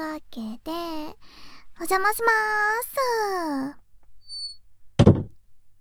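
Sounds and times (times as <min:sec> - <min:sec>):
speech: 0:00.1 - 0:03.8
door being shut with a thud and rattle: 0:05.0 - 0:05.3.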